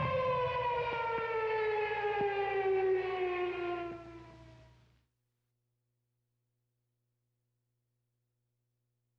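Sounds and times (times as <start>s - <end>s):
anti-aircraft gunfire: 0.0s - 1.3s
air raid siren: 0.0s - 5.0s.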